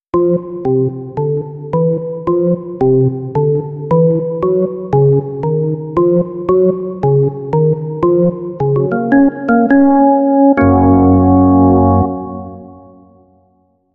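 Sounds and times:
organ music: 0.2 - 13.4.

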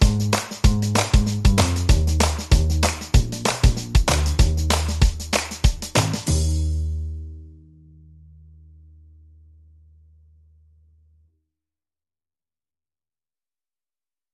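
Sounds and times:
drums: 0.0 - 7.1
bass: 0.0 - 11.4.

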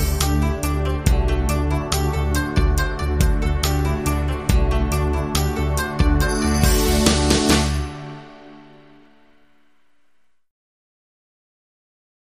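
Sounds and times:
Japanese ballad underscore music: 0.0 - 9.6.

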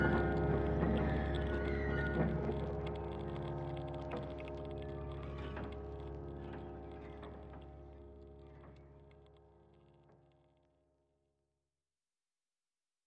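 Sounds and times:
Mali piano: 0.0 - 8.9.

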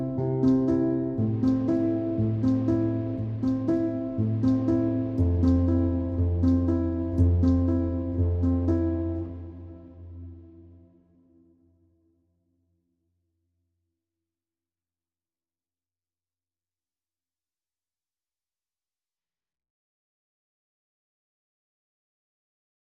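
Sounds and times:
low piano: 0.0 - 11.7.

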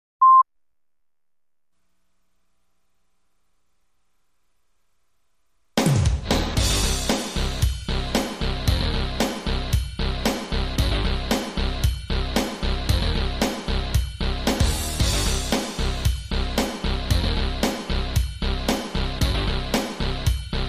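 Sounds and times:
bass: 5.8 - 20.6
drums: 5.8 - 20.6.

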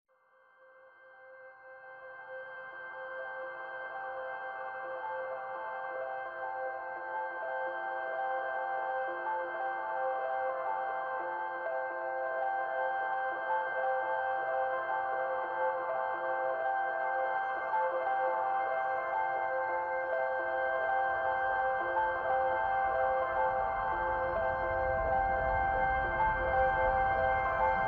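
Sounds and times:
ambient music mix: 3.1 - 27.8.

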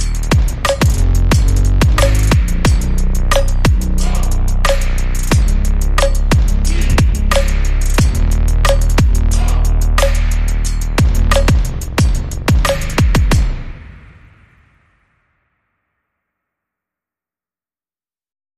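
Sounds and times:
groove: 0.0 - 14.3
bass: 0.0 - 14.4.

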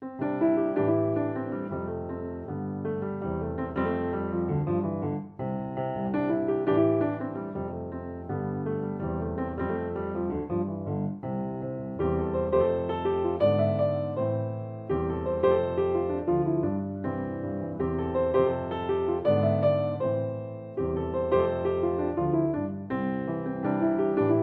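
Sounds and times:
solo piano: 0.0 - 24.4.

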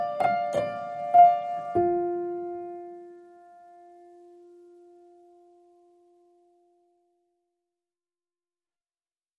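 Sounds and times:
solo piano playing: 0.0 - 7.1.

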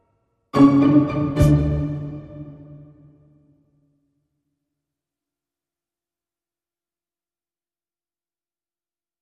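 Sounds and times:
tango music without woodwinds: 0.6 - 3.2.

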